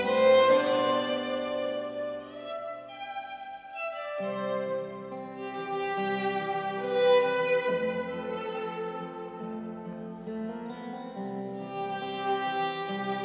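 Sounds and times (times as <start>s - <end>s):
guitar: 0.0s - 13.2s
violin: 0.0s - 13.2s.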